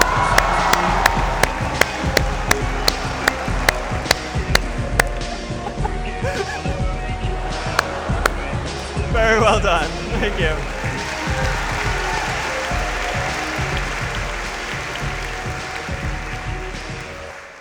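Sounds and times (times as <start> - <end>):
audience applause: 0.0 - 5.1, 10.4 - 17.5
laughter: 5.0 - 10.9.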